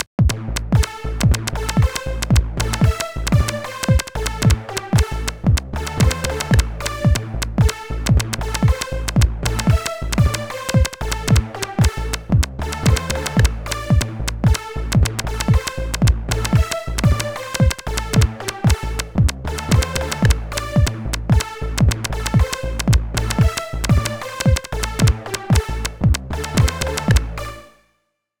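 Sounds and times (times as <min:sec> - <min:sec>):
rock beat on an MPC sampler: 0:00.0 - 0:27.2.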